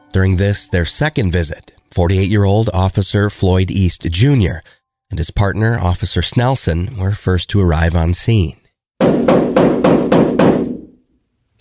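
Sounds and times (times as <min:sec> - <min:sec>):
speech: 0:00.1 - 0:09.5
loud knocking on a dorm room door: 0:09.0 - 0:10.9.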